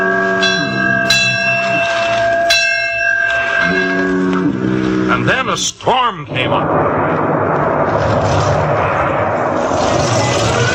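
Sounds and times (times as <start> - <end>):
buoy bell clanging: 0.0 - 4.9
steady low hum: 0.0 - 10.7
speech: 5.5 - 7.2.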